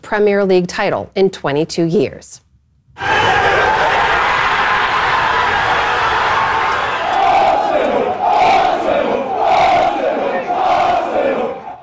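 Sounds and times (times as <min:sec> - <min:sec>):
speech: 0:00.1 - 0:02.4, 0:03.0 - 0:03.8
football fans chanting in the streets of North London: 0:03.0 - 0:11.8.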